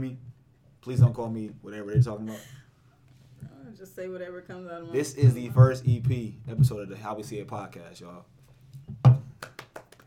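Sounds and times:
speech: 0.0 - 2.6, 3.6 - 8.4
quiet hand clapping: 9.0 - 10.0.

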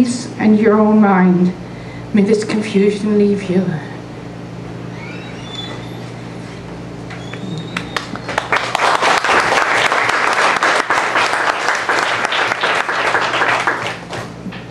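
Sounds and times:
speech: 0.4 - 3.9
audience applause after a poem: 7.3 - 14.6.

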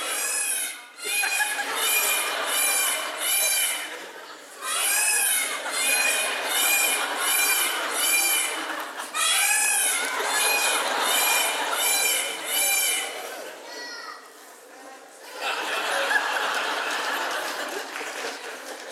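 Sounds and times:
peacock screaming: 0.0 - 4.0, 4.6 - 13.2
laughter: 0.0 - 13.7, 15.2 - 18.9.

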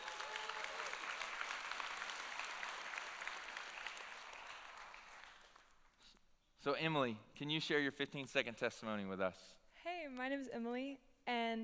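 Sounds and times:
audience applause welcoming a student to the stage: 0.0 - 5.8
speech: 6.6 - 11.6.

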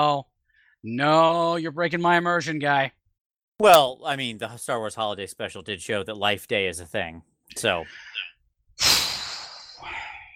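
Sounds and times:
speech: 0.0 - 3.0, 3.6 - 8.9
person sighing through the mouth: 8.8 - 10.3.

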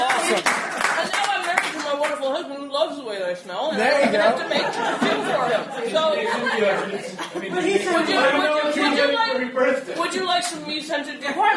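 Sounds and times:
laughter: 0.0 - 1.5, 3.7 - 10.2
round of applause: 0.0 - 2.2
speech: 0.3 - 0.5, 3.3 - 11.5.

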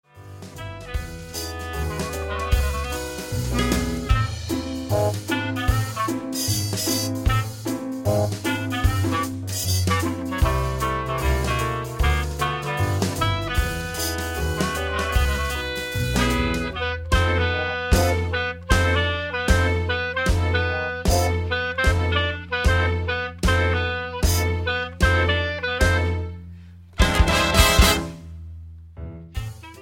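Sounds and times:
swing music: 0.0 - 29.8.

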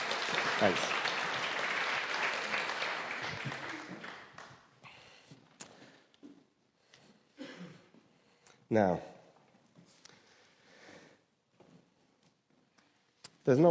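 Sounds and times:
audience applause for the cast: 0.0 - 4.6
speech: 0.6 - 1.0, 8.7 - 9.1, 13.5 - 13.7.

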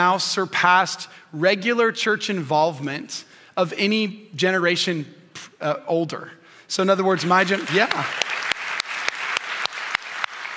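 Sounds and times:
speech: 0.0 - 8.3
audience applause during a church talk: 7.2 - 10.5
sharp claps: 7.5 - 10.5.

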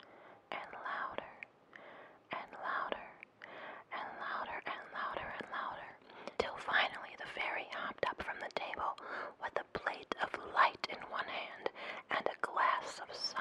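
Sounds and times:
soft breathy murmuring voices: 0.5 - 1.4, 3.9 - 13.3.

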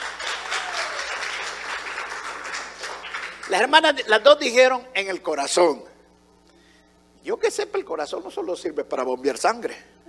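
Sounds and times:
audience applause: 0.0 - 3.6
speech: 3.5 - 5.9, 7.2 - 9.9.

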